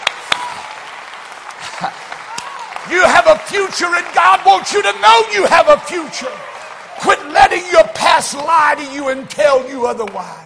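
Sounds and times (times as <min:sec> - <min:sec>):
audience clapping hands: 0:00.0 - 0:10.4
speech: 0:01.8 - 0:02.1, 0:02.8 - 0:10.4.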